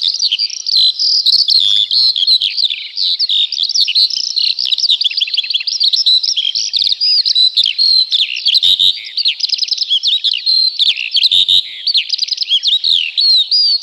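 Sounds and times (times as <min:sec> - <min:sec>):
Eurasian skylark singing: 0:00.0 - 0:13.8.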